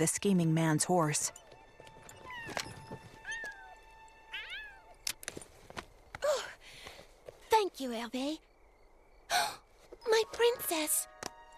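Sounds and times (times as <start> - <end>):
speech: 0.0 - 1.4, 7.8 - 8.5, 9.3 - 11.1
cat mewing: 2.2 - 5.0.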